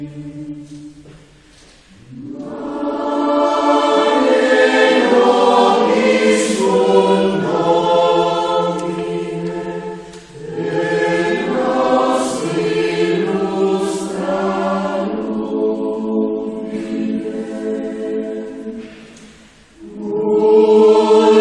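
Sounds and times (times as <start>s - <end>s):
choir singing a chorale: 0.0s - 21.3s.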